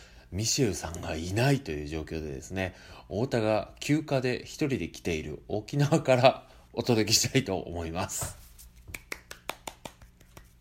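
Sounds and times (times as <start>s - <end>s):
speech: 0.3s - 8.4s
hand clapping: 8.8s - 10.6s.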